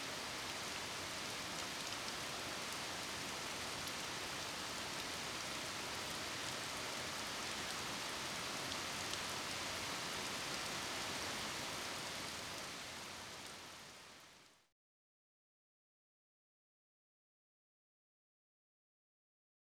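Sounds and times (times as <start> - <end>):
medium rain: 0.0 - 14.7.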